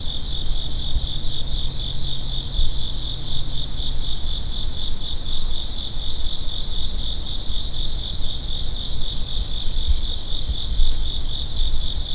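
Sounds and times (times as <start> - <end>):
cricket chirping: 0.0 - 12.1.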